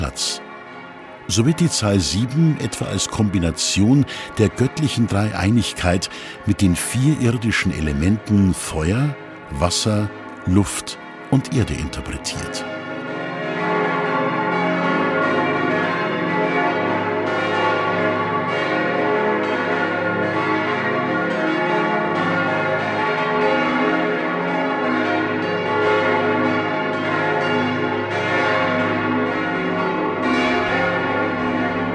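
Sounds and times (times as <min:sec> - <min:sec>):
church bells of Pfarrkirche St. Augustinus in Munich ringing in sequence: 0:00.0 - 0:31.9
speech: 0:00.1 - 0:00.4, 0:01.3 - 0:12.8.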